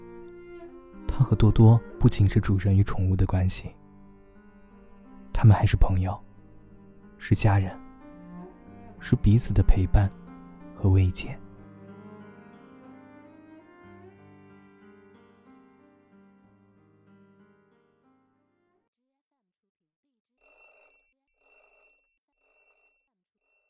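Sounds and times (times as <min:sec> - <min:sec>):
soft music: 0:00.0 - 0:18.6
speech: 0:01.2 - 0:03.8, 0:05.4 - 0:06.3, 0:07.2 - 0:07.8, 0:09.0 - 0:10.2, 0:10.8 - 0:11.4
alarm clock ringing: 0:20.4 - 0:23.6.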